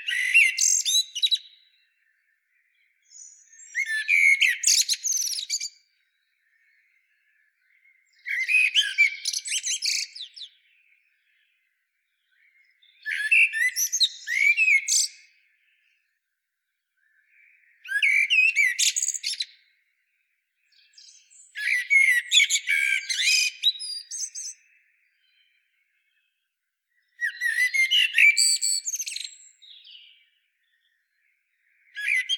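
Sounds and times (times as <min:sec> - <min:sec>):
common blackbird singing: 0:00.0 - 0:16.1, 0:17.0 - 0:19.8, 0:20.6 - 0:32.3.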